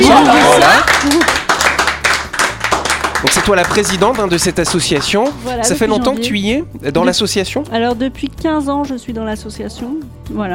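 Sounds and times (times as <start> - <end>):
group applauding: 0.0 - 6.2
speech: 3.2 - 10.5.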